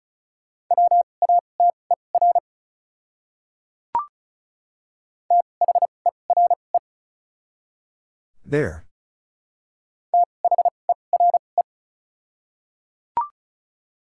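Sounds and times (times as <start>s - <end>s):
fast Morse code beeps at 35 wpm: 0.7s - 2.4s, 5.3s - 6.6s, 10.2s - 11.4s
speech: 8.5s - 8.8s.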